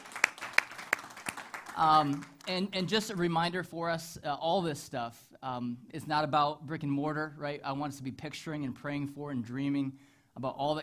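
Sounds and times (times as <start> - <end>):
sparse audience claps: 0.0 - 2.7
speech: 1.8 - 10.8.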